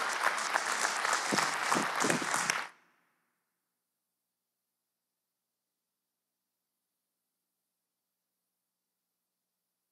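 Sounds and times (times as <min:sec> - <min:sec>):
church audience clapping to welcome a speaker: 0:00.0 - 0:02.8.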